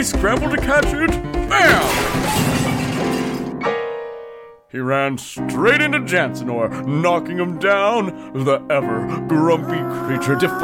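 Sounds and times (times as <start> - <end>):
speech: 0.0 - 3.8, 4.7 - 10.6
vase crashing and shattering: 1.6 - 3.7.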